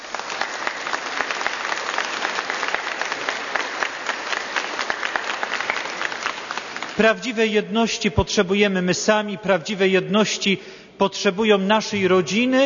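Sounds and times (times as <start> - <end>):
applause from a large audience: 0.0 - 7.0
speech: 7.0 - 12.6.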